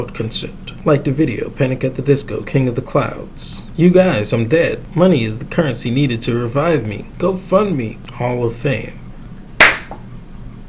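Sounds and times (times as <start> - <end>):
speech: 0.0 - 9.0
single soft hand clap: 9.6 - 10.0.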